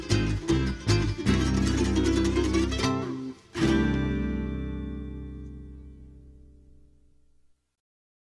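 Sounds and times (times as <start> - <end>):
march music: 0.0 - 5.5.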